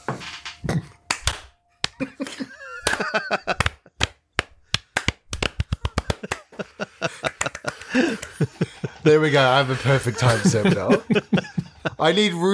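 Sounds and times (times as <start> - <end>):
hand claps for audio sync: 1.1 - 2.1, 2.8 - 8.4
laughter: 1.9 - 4.0, 5.8 - 12.5
speech: 9.0 - 12.5.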